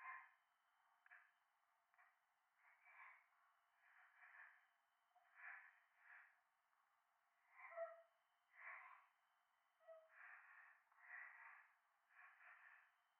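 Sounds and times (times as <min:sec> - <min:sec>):
breathing in the left ear deep in the mountains: 0:02.0 - 0:06.4, 0:08.5 - 0:09.2, 0:10.0 - 0:13.1.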